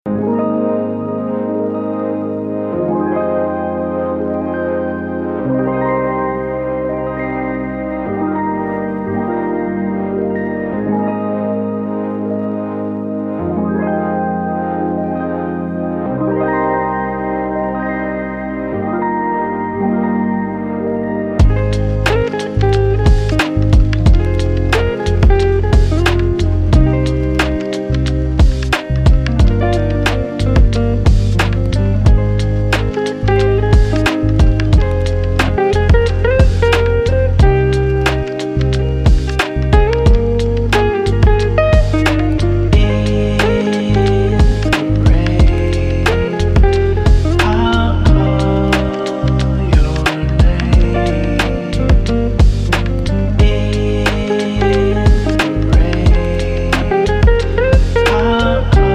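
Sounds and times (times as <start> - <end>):
chill song: 0.1 - 58.9.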